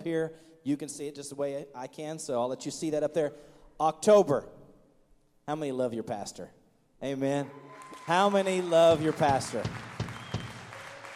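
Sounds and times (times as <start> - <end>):
speech: 0.0 - 4.6, 5.5 - 9.9
audience applause: 7.6 - 11.1.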